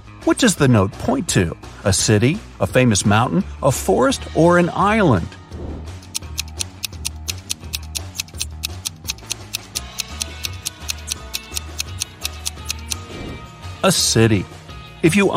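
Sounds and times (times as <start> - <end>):
throbbing low bassline and soft music: 0.0 - 15.3
speech: 0.3 - 5.4, 13.8 - 15.3
clock ticking: 6.0 - 13.0.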